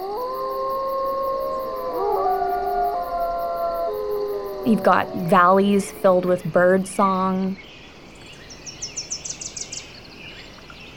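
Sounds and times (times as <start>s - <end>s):
wolf pack howling: 0.0s - 7.5s
speech: 4.6s - 7.8s.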